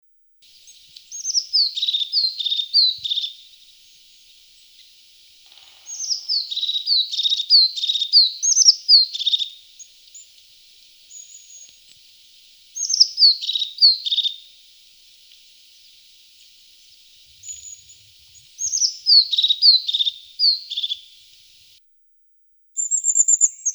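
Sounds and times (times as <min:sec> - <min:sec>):
crested tit calling with purring buzzy trills: 0:00.4 - 0:21.8.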